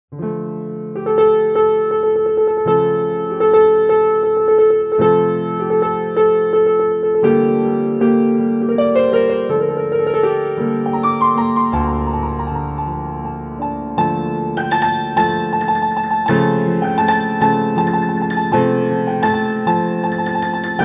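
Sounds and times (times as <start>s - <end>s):
piano: 0.1s - 20.8s.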